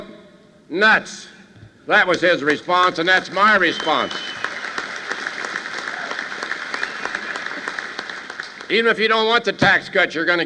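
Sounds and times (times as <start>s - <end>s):
speech: 0.7s - 4.3s, 8.7s - 10.4s
crowd standing ovation: 2.5s - 8.8s.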